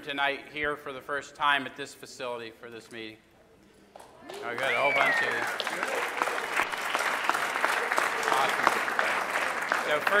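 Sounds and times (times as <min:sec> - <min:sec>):
speech: 0:00.0 - 0:03.3, 0:04.3 - 0:06.3, 0:08.4 - 0:08.8, 0:09.9 - 0:10.1
audience applause: 0:04.0 - 0:10.1.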